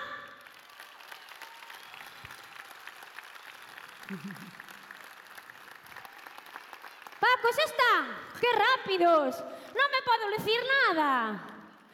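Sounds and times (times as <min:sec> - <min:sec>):
audience applause: 0:00.0 - 0:07.4
speech: 0:04.1 - 0:04.7, 0:07.4 - 0:11.5.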